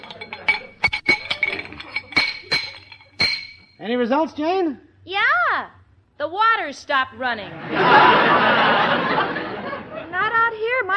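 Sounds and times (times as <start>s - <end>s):
wrench tightening metal pipes: 0.0s - 3.8s
speech: 3.8s - 9.5s
laughter: 7.4s - 10.3s.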